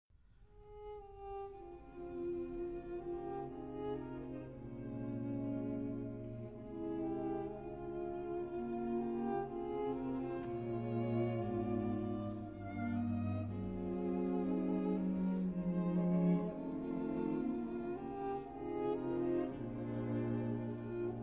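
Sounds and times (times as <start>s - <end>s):
string quartet in F: 0.6s - 21.2s.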